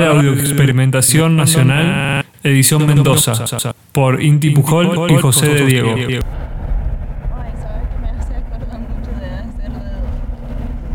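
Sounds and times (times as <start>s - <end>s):
speech: 0.0s - 6.4s
trucks passing by: 7.3s - 10.9s.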